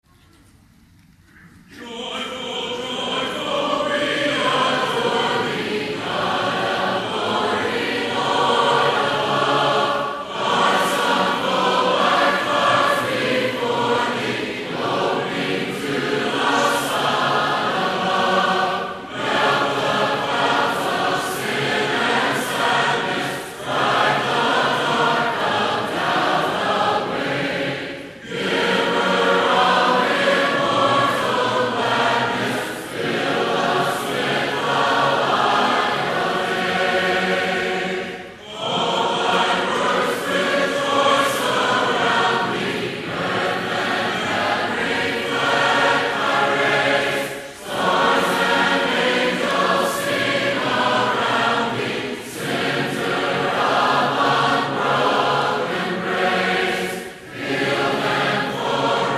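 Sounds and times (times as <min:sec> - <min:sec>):
a cappella hymn: 0:01.3 - 0:59.1.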